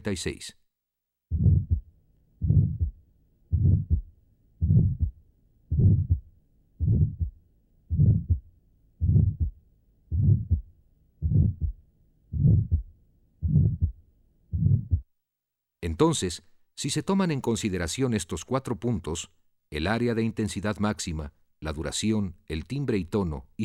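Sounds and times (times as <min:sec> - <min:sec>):
speech: 0:00.0 - 0:00.6, 0:16.0 - 0:23.6
innocent systolic heart murmur: 0:01.3 - 0:15.1.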